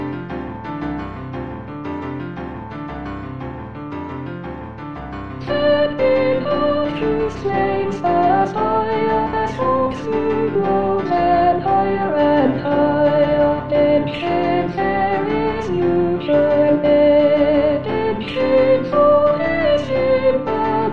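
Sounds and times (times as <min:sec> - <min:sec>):
soprano singing: 0:05.4 - 0:20.9.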